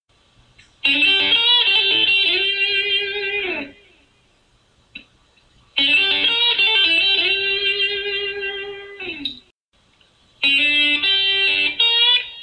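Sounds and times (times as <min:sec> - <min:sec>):
quick blues intro lick: 0:00.8 - 0:03.9, 0:05.8 - 0:09.5, 0:10.4 - 0:12.4.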